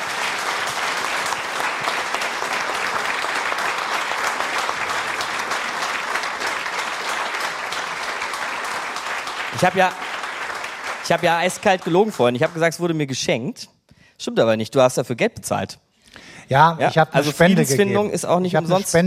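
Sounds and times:
audience applause: 0:00.0 - 0:12.9
speech: 0:09.6 - 0:10.0, 0:11.1 - 0:15.8, 0:16.5 - 0:19.0.

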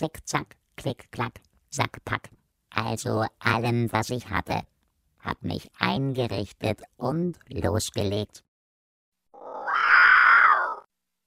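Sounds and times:
speech: 0:00.0 - 0:08.5
small monster meowing like a cat: 0:09.4 - 0:10.9.

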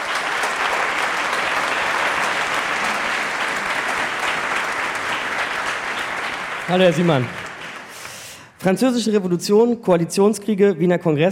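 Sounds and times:
audience applause: 0:00.0 - 0:08.4
speech: 0:06.7 - 0:07.4, 0:08.6 - 0:11.3.

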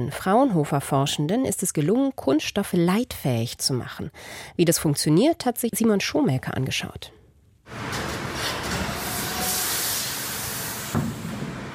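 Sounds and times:
speech: 0:00.0 - 0:07.2
injection moulding machine running: 0:07.7 - 0:11.7.

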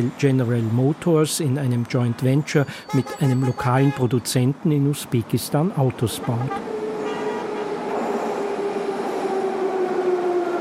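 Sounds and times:
speech: 0:00.0 - 0:06.7
subway train pulling into station: 0:06.6 - 0:10.5.

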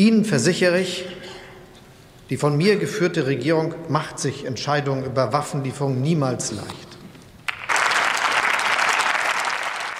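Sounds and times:
speech: 0:00.0 - 0:01.4, 0:02.3 - 0:07.0
parliament applause: 0:07.5 - 0:09.9.

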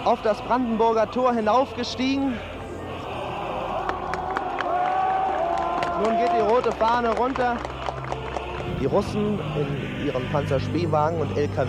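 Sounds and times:
speech: 0:00.0 - 0:02.5, 0:06.0 - 0:07.7, 0:08.8 - 0:11.6
crowd cheering and applauding: 0:03.0 - 0:08.8.

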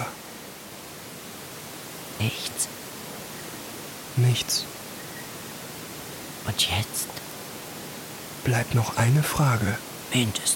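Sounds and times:
amplified background hiss of recorded silence: 0:00.0 - 0:10.5
speech: 0:02.2 - 0:02.8, 0:04.2 - 0:04.7, 0:06.4 - 0:07.2, 0:08.4 - 0:10.5.

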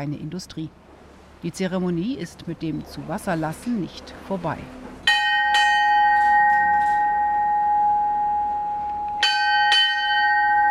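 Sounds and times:
speech: 0:00.0 - 0:04.9
ship's bell ringing: 0:05.0 - 0:10.6.

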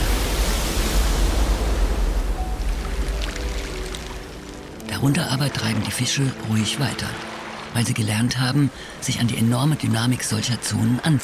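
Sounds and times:
crashing foaming surf waves: 0:00.0 - 0:04.8
speech: 0:05.0 - 0:11.2.

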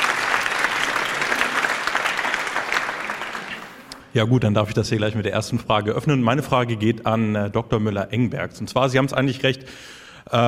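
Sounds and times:
audience applause: 0:00.0 - 0:04.0
speech: 0:04.2 - 0:10.4.

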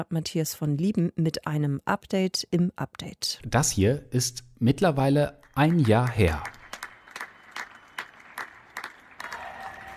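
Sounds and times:
speech: 0:00.0 - 0:06.6
balcony applause for health workers: 0:05.4 - 0:09.9.

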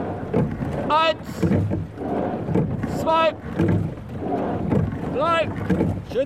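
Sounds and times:
constant watery wash: 0:00.0 - 0:06.2
rowing strokes through water: 0:00.0 - 0:06.2
speech: 0:00.3 - 0:01.8, 0:02.6 - 0:04.4, 0:05.2 - 0:06.2.

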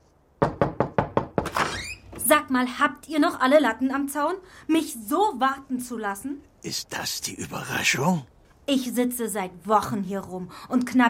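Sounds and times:
knocking on a door: 0:00.4 - 0:01.6
speech: 0:02.3 - 0:11.0.

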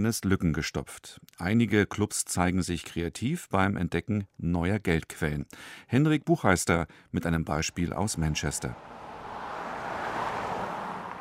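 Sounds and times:
speech: 0:00.0 - 0:09.0
traffic on a busy road in south Manchester beside a rugby club: 0:08.0 - 0:11.1.

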